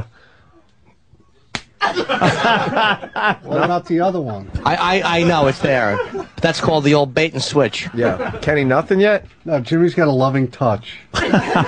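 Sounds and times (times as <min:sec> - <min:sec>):
slap on a man's buttocks: 0:01.5 - 0:01.8
laughter: 0:01.8 - 0:09.2, 0:11.1 - 0:11.6
speech: 0:01.9 - 0:11.6.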